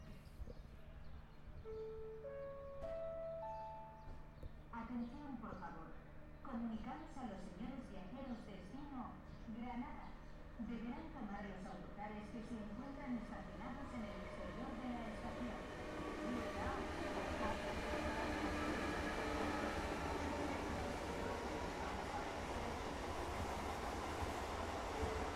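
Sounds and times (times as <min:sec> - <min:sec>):
Antequera Train Station ambience: 0:00.0 - 0:25.3.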